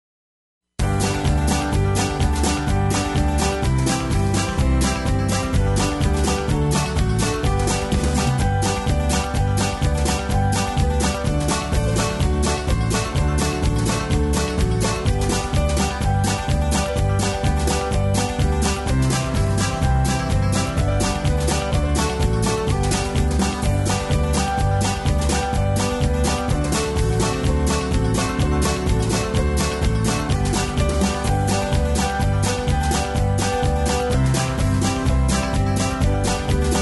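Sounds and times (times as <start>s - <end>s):
yodeling song rhythm track in square dance style: 0.8s - 36.7s.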